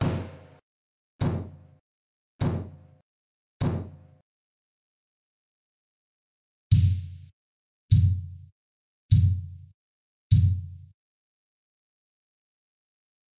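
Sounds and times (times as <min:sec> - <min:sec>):
processed kick drum: 0:00.0 - 0:00.6, 0:06.7 - 0:07.2, 0:07.9 - 0:08.4, 0:09.1 - 0:09.6, 0:10.3 - 0:10.8.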